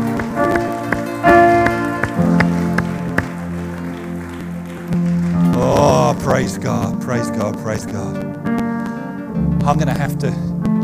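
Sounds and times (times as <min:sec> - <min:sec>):
audience applause: 0:00.0 - 0:08.2
speech: 0:06.4 - 0:08.4, 0:09.6 - 0:10.8.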